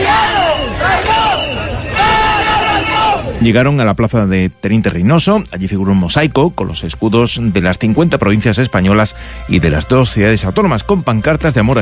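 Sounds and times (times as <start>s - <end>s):
protest crowd shouting: 0.0s - 3.4s
speech: 3.4s - 11.8s.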